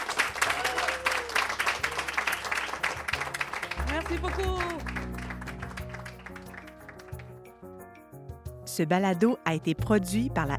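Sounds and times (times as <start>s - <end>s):
enthusiastic audience applause from a crowd in Gaspé: 0.0s - 7.5s
speech: 4.0s - 5.0s, 8.8s - 10.5s.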